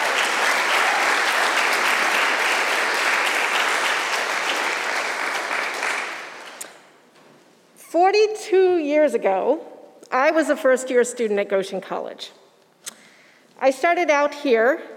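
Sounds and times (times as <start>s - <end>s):
crowd applause: 0.0s - 6.6s
speech: 8.1s - 12.4s, 13.6s - 14.9s.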